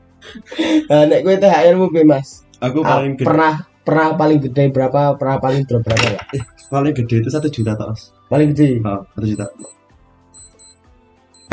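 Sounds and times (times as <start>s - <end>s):
speech: 0.3s - 9.8s
sahur alarm beeping: 6.4s - 6.8s, 7.4s - 7.8s, 9.4s - 9.8s, 10.4s - 10.8s.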